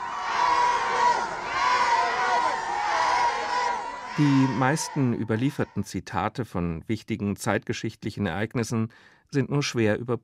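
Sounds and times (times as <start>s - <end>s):
crowd shouting and cheering farewell at a train: 0.0s - 5.9s
speech: 4.2s - 10.2s.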